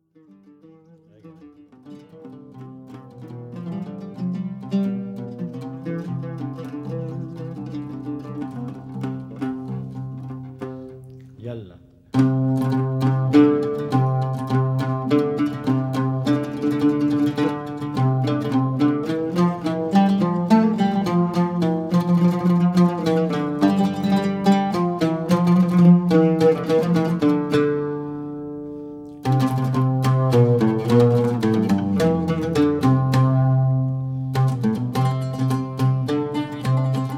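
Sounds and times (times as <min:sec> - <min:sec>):
maqam music: 0:00.0 - 0:37.1.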